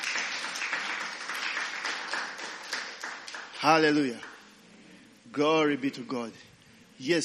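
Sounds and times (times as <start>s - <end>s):
crowd applauding: 0.0s - 4.4s
speech: 3.6s - 4.3s, 5.3s - 7.2s.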